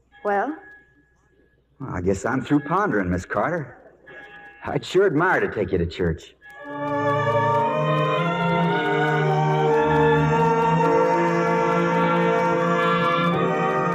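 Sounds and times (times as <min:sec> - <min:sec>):
speech: 0:00.2 - 0:00.7, 0:01.8 - 0:03.8, 0:04.6 - 0:06.4
church bell ringing: 0:06.6 - 0:13.9.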